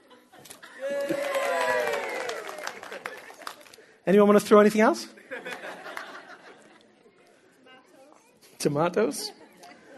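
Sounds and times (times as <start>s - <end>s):
laughter: 0.0s - 1.5s, 2.8s - 3.7s, 5.2s - 7.1s, 9.1s - 9.9s
audience clapping: 0.8s - 3.9s, 5.5s - 6.4s
speech: 4.0s - 5.2s, 8.6s - 9.4s.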